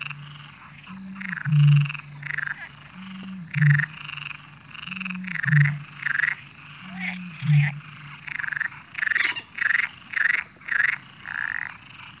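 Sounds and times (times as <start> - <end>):
frogs croaking: 0.0 - 12.1
coots calling: 9.1 - 9.6.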